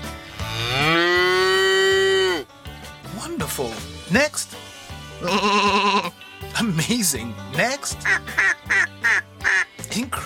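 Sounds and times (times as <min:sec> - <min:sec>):
cow mooing: 0:00.4 - 0:02.5, 0:05.2 - 0:06.1
speech: 0:03.6 - 0:08.8, 0:10.0 - 0:10.2.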